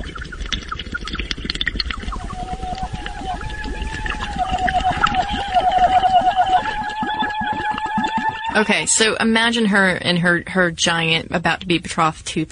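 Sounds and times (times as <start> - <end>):
underwater mouth-to-water singing: 2.0 - 9.1
speech: 8.6 - 12.4.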